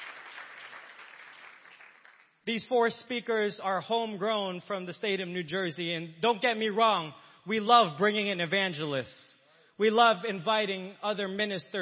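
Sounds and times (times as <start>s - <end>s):
audience hand clapping: 0.0s - 2.4s
speech: 2.4s - 11.7s.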